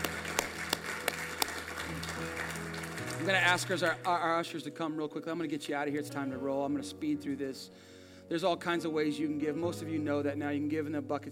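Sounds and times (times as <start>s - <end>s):
audience hand clapping: 0.0s - 4.3s
speech: 3.2s - 11.3s.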